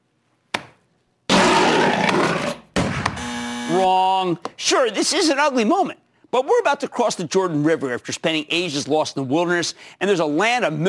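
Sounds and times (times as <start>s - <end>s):
bear roaring: 1.3s - 2.6s
speech: 3.7s - 10.8s.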